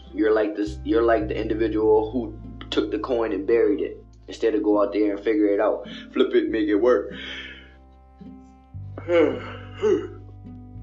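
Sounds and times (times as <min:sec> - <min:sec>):
speech: 0:00.1 - 0:07.5, 0:09.0 - 0:10.2
person yawning: 0:09.0 - 0:10.2.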